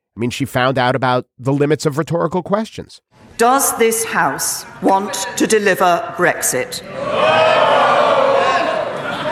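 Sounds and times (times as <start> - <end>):
speech: 0.2 - 8.1
MPs shouting in the House of Commons: 6.8 - 9.2.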